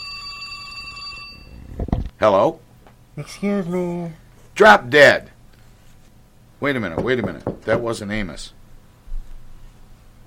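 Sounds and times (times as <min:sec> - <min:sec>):
telephone ringing: 0:00.0 - 0:01.9
speech: 0:02.2 - 0:02.6, 0:03.2 - 0:05.3, 0:06.6 - 0:08.6.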